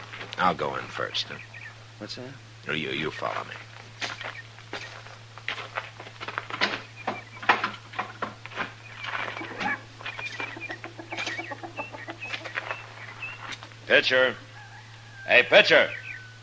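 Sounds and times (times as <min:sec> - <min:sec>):
low hum: 0:00.0 - 0:15.2
speech: 0:00.4 - 0:03.7, 0:13.9 - 0:14.5, 0:15.3 - 0:16.0
chickens clucking in a barn: 0:06.6 - 0:15.9.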